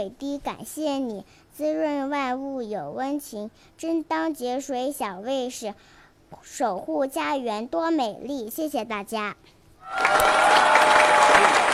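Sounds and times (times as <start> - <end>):
speech: 0.0 - 11.7
audience applause at a school event: 9.8 - 11.7.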